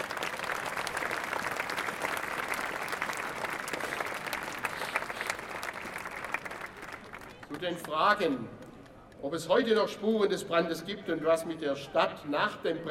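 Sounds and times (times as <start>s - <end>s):
audience applause: 0.0s - 7.6s
speech: 7.6s - 8.6s, 9.2s - 12.8s.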